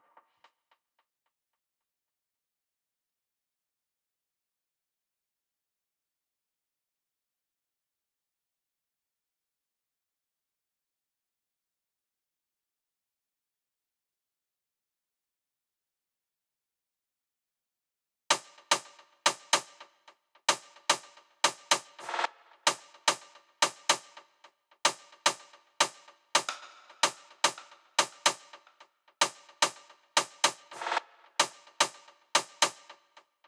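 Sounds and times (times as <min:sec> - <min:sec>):
snare drum hits: 0:18.3 - 0:19.9, 0:20.5 - 0:24.3, 0:24.9 - 0:33.0.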